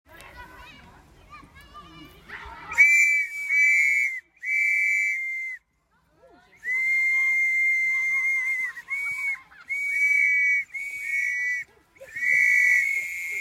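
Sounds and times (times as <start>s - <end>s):
whistle: 2.7s - 5.7s, 6.6s - 13.4s.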